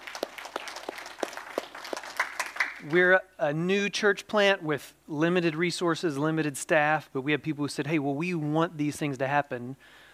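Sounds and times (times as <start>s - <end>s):
faint applause from a church congregation: 0.0s - 3.0s
speech: 2.8s - 10.0s.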